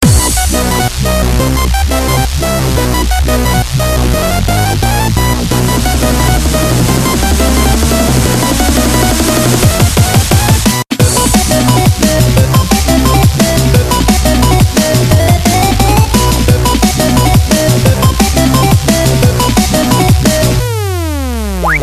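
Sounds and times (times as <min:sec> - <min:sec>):
techno music: 0:00.0 - 0:21.8.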